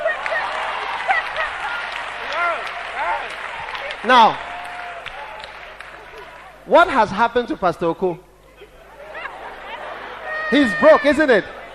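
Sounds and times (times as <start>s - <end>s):
laughter: 0.0s - 2.2s, 8.5s - 11.7s
audience clapping: 0.0s - 6.6s
speech: 4.0s - 4.5s, 6.7s - 8.3s, 10.5s - 11.6s.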